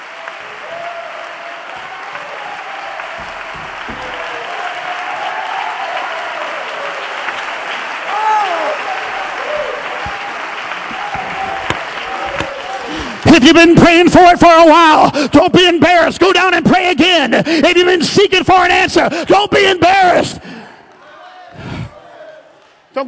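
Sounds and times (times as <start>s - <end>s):
audience clapping hands: 0.0s - 14.2s
speech: 13.5s - 20.5s.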